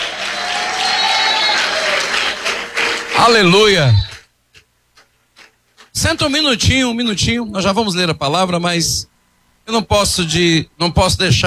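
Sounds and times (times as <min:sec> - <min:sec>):
audience clapping: 0:00.0 - 0:06.4
speech: 0:03.2 - 0:04.1, 0:06.0 - 0:11.4.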